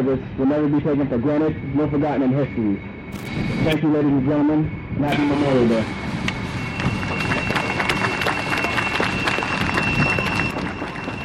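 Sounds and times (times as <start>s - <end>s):
speech: 0.0s - 6.0s
applause after a speech: 6.7s - 11.2s.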